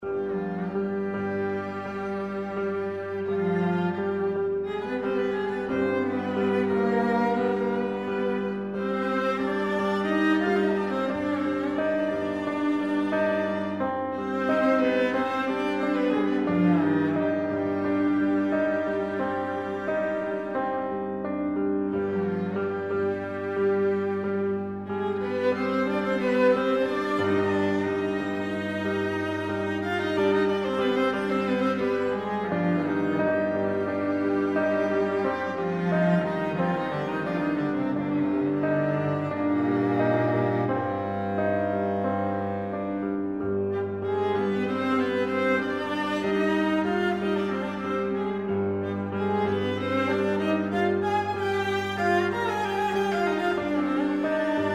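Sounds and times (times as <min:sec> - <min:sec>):
allegro classical piece: 0:00.0 - 0:54.7.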